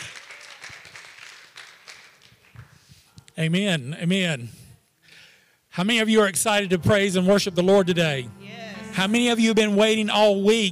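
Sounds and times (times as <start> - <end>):
crowd applause: 0.0 - 2.5
speech: 3.4 - 4.6, 5.8 - 8.4, 9.0 - 10.7.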